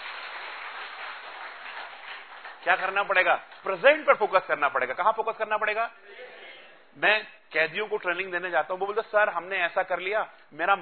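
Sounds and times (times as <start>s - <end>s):
audience clapping: 0.0s - 4.4s
speech: 2.6s - 6.3s, 6.9s - 10.7s.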